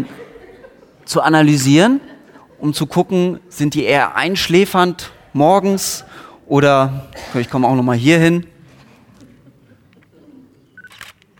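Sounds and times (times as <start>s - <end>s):
laughter: 0.0s - 3.1s, 8.7s - 10.8s
low noise: 0.0s - 11.3s
speech: 1.1s - 8.5s
camera shutter clicks taking photos: 10.8s - 11.3s.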